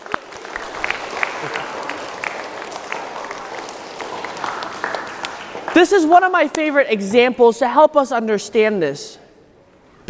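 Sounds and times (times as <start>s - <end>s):
audience round of applause: 0.0s - 5.8s
speech: 5.8s - 9.2s.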